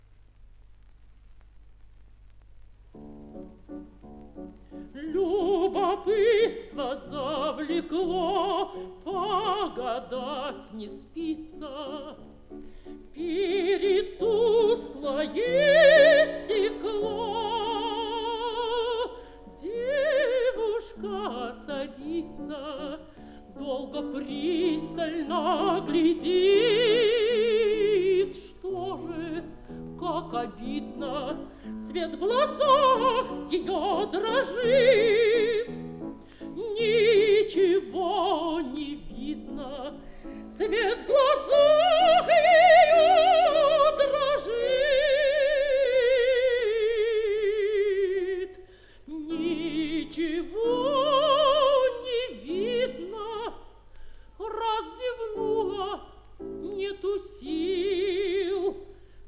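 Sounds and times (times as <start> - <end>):
piano accompaniment: 2.9 - 45.7, 55.2 - 58.8
mezzo-soprano singing: 3.0 - 59.2.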